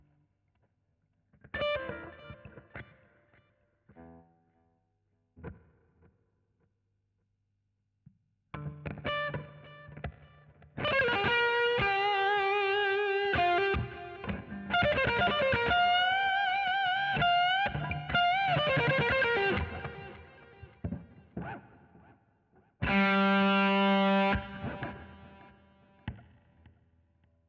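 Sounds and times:
guitar solo: 1.6s - 3.0s, 8.6s - 21.7s, 22.8s - 26.2s.

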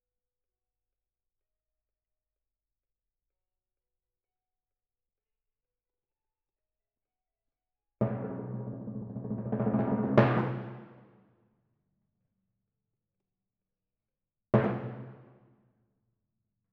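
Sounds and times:
timpani in F: 8.0s - 11.2s, 14.6s - 15.5s.

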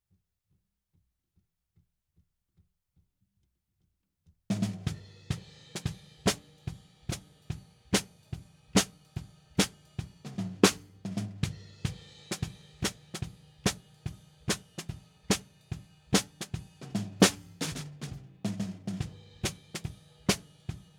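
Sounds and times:
snare drum: 4.5s - 20.9s.

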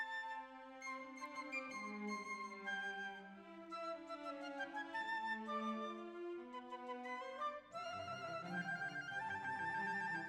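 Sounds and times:
violins: 0.1s - 10.2s.

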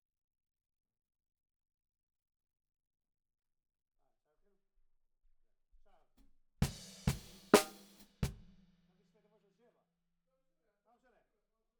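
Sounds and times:
snare drum: 6.6s - 8.6s.

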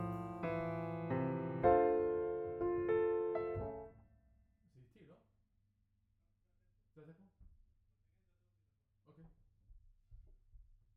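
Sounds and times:
piano note B: 0.0s - 3.9s.

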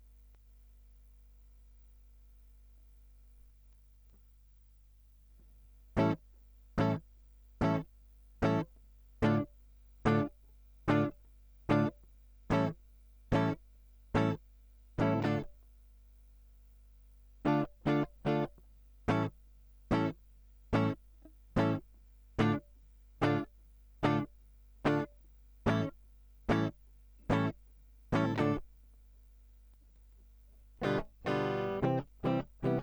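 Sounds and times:
guitar line: 6.8s - 7.0s, 7.6s - 7.8s, 8.4s - 8.6s, 9.2s - 10.3s, 10.9s - 11.9s, 12.5s - 13.6s, 14.2s - 14.4s, 15.0s - 15.5s, 17.5s - 18.5s, 19.1s - 19.3s, 19.9s - 20.1s, 20.8s - 21.0s, 21.6s - 21.8s, 22.4s - 22.6s, 23.2s - 24.3s, 24.9s - 25.1s, 25.7s - 26.7s, 27.3s - 28.6s, 30.8s - 32.8s.

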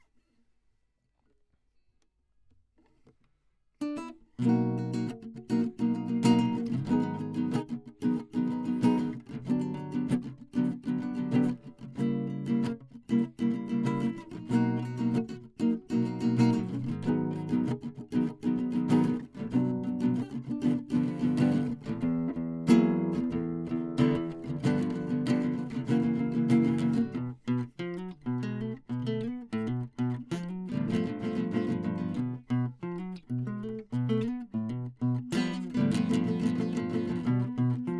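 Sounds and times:
classical guitar: 3.8s - 37.9s.

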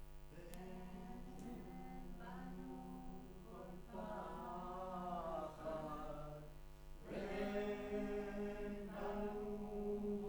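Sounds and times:
choir singing in room: 0.3s - 10.2s.

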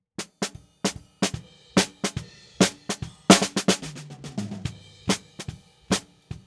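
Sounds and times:
snare drum: 0.0s - 6.4s.

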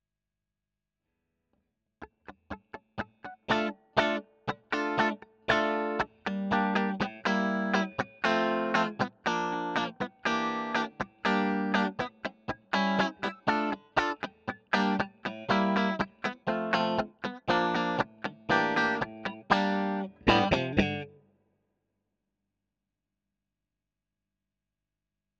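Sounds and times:
electric guitar: 2.2s - 21.2s.

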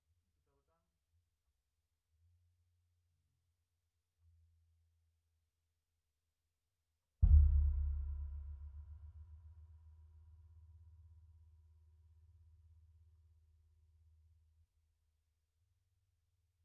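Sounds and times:
sub bass: 7.2s - 10.1s.

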